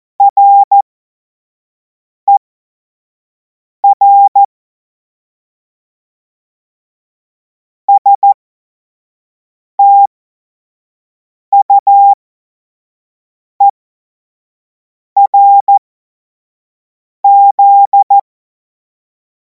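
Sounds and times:
Morse code course tones: 0.2s - 0.8s, 3.8s - 4.5s, 9.8s - 10.1s, 11.6s - 12.2s, 15.2s - 15.8s, 17.2s - 18.2s.

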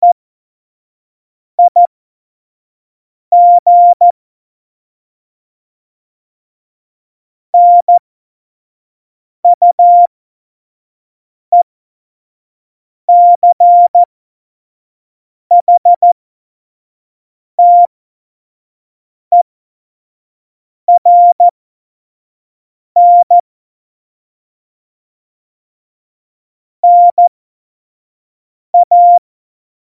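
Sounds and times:
CW Morse code at tempo 70: 1.6s - 1.8s, 3.3s - 4.0s, 7.6s - 8.0s, 9.6s - 10.1s, 13.1s - 14.1s, 15.5s - 16.2s, 17.6s - 17.9s, 21.0s - 21.5s, 23.0s - 23.4s, 26.8s - 27.3s, 28.8s - 29.2s.

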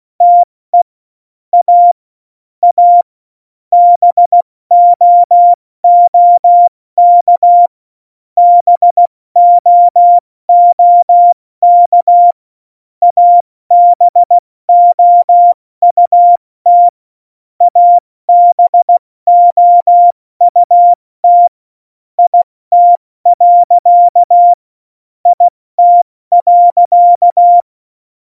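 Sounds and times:
CW Morse code at tempo 70: 0.2s - 0.5s, 1.6s - 2.0s, 2.6s - 3.1s, 3.8s - 7.7s, 8.4s - 12.4s, 13.1s - 17.0s, 17.6s - 21.5s, 22.2s - 24.6s, 25.3s - 27.7s.

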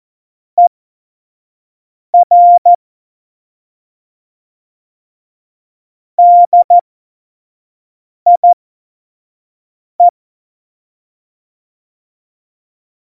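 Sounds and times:
Morse code course beeps: 2.2s - 2.8s, 6.2s - 6.8s, 8.3s - 8.6s.

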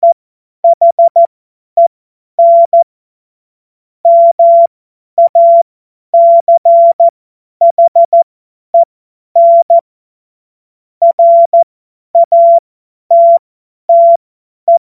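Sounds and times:
CW Morse code beeps: 0.0s - 2.8s, 4.1s - 5.6s, 6.2s - 8.2s, 8.8s - 9.8s, 11.0s - 11.6s, 12.2s - 14.8s.

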